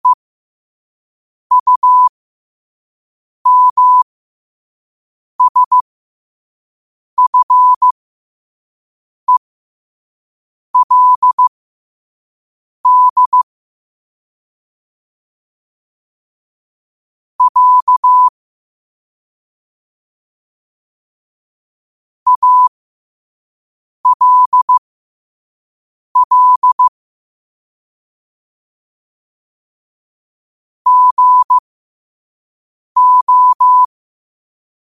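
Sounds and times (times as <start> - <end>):
morse code at 5 wpm: 1.5 - 2.1, 3.5 - 4.0, 5.4 - 5.8, 7.2 - 7.9, 10.8 - 11.5, 12.9 - 13.5, 17.4 - 18.3, 22.3 - 22.7, 24.0 - 24.8, 26.2 - 26.9, 30.9 - 31.6, 33.0 - 33.9.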